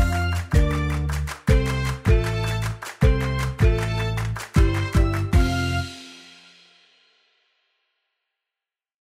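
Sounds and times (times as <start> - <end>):
instrumental music: 0.0 - 7.0.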